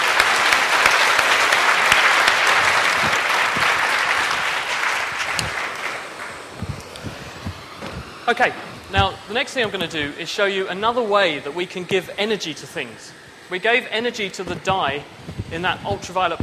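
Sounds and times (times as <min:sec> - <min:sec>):
audience applause: 0:00.0 - 0:07.8
speech: 0:08.3 - 0:16.4.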